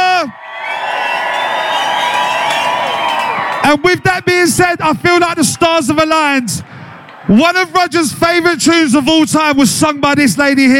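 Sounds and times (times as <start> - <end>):
audience cheering and whooping: 0.0 - 4.0
speech: 3.7 - 6.7, 7.3 - 10.7.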